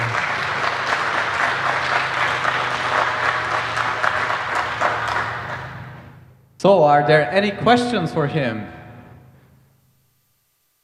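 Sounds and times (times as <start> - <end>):
audience applause: 0.0 - 6.2
speech: 6.6 - 8.8.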